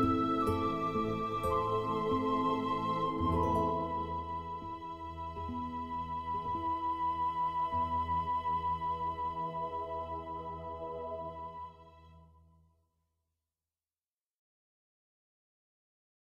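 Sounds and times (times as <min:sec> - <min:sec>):
instrumental music: 0:00.0 - 0:12.3.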